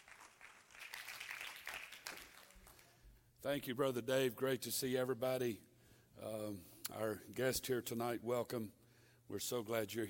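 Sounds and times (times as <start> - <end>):
audience clapping hands in welcome: 0.0 - 3.0
speech: 3.4 - 10.0.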